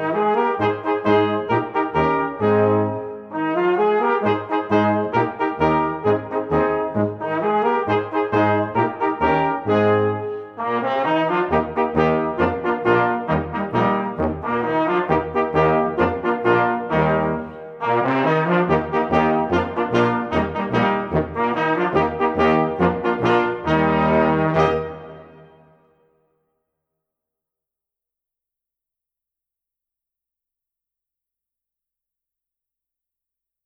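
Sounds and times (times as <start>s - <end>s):
polka music: 0.0s - 25.6s.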